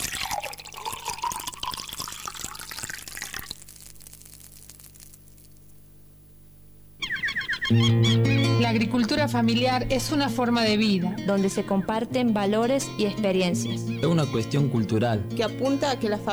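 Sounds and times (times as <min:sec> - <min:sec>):
water running and splashing: 0:00.0 - 0:05.2
speech: 0:07.7 - 0:16.3.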